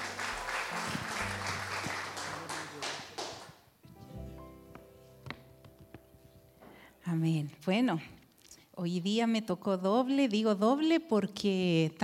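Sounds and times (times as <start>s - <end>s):
crowd applauding: 0.0s - 3.7s
speech: 7.1s - 8.2s, 8.8s - 12.0s.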